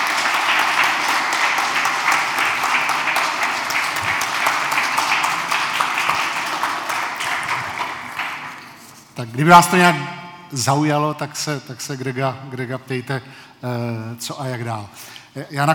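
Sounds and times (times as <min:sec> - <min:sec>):
audience applause: 0:00.0 - 0:09.0
speech: 0:09.2 - 0:15.7.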